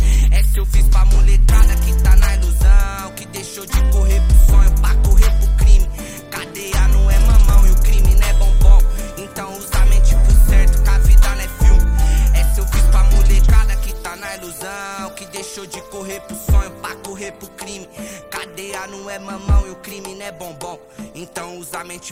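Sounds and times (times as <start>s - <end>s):
deep bass: 0.0s - 3.0s, 3.8s - 6.0s, 6.8s - 9.1s, 9.8s - 14.0s.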